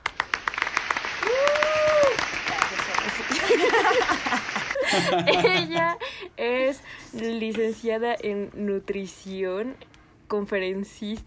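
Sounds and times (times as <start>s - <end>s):
applause: 0.0s - 5.2s
laughter: 2.5s - 6.2s
speech: 5.0s - 11.2s.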